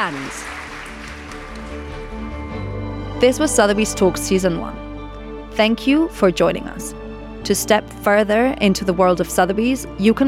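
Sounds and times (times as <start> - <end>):
speech: 0.0 - 0.8, 3.2 - 4.8, 5.6 - 10.2
audience applause: 0.0 - 2.4.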